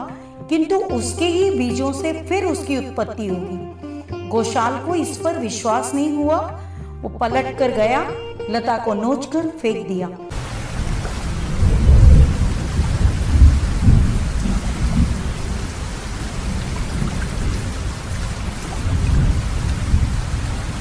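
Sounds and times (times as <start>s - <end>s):
speech: 0.5s - 10.2s
steady rain: 10.3s - 20.7s
thunder rumbling: 10.3s - 20.7s.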